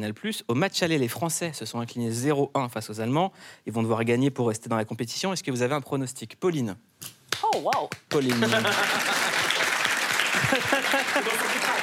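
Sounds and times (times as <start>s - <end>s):
speech: 0.0s - 9.2s, 10.5s - 11.8s
many hands clapping: 7.3s - 11.8s
laughter: 8.3s - 11.8s.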